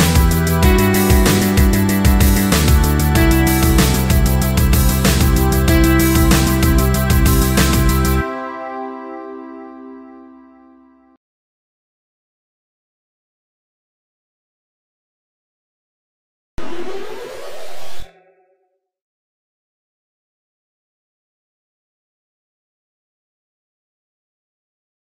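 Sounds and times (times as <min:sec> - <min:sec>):
karaoke backing track: 0:00.0 - 0:08.2.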